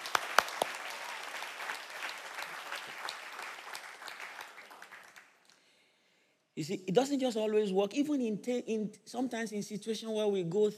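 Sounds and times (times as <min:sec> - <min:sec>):
audience clapping in praise: 0:00.0 - 0:05.6
speech: 0:06.6 - 0:10.7.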